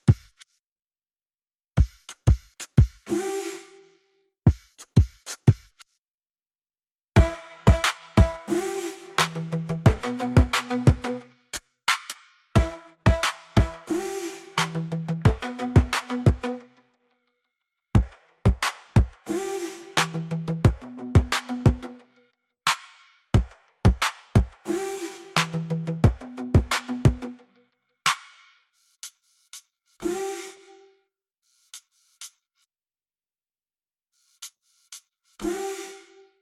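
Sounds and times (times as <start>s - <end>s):
drums: 0.0s - 0.4s, 1.8s - 3.1s, 4.5s - 5.8s, 7.2s - 8.6s, 9.2s - 16.5s, 18.0s - 19.4s, 20.0s - 21.9s, 22.7s - 24.7s, 25.4s - 27.3s, 28.1s - 28.4s.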